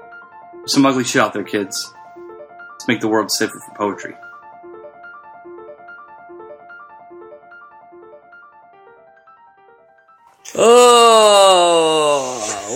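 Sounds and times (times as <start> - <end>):
speech: 0.6 - 2.0, 2.9 - 4.3
post-Mardi Gras yawn: 10.5 - 12.7.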